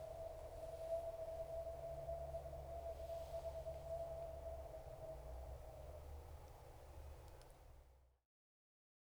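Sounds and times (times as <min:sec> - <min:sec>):
ambience of a sonic dance performance: 0:00.0 - 0:07.2.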